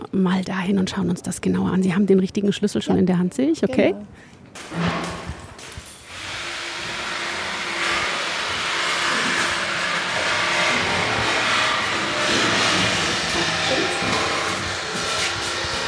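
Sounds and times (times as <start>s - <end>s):
speech: 0.1s - 5.1s
passenger elevator running: 4.8s - 15.8s.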